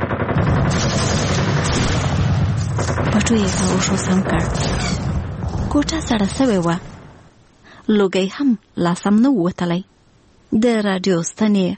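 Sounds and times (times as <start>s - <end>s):
successive gunshots in a dense barrage: 0.0s - 7.2s
heavy low rumble: 0.0s - 7.6s
speech: 3.3s - 5.0s, 5.7s - 6.9s, 7.9s - 9.9s, 10.5s - 11.7s.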